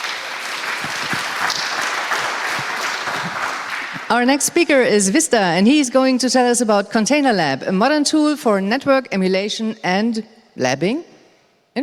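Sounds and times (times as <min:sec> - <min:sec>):
audience applause at a talk event: 0:00.0 - 0:04.1
speech: 0:04.1 - 0:11.1.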